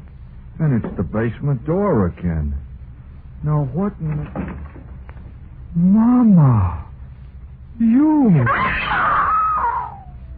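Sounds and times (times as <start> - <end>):
speech: 0.6 - 2.6, 3.4 - 4.9, 5.7 - 6.9, 7.8 - 9.3
woman screaming: 8.4 - 10.2.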